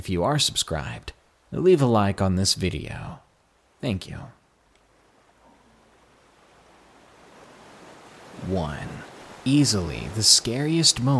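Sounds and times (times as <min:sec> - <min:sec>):
speech: 0:00.0 - 0:03.2, 0:03.8 - 0:04.4, 0:08.4 - 0:11.1
ocean surf: 0:04.7 - 0:11.1.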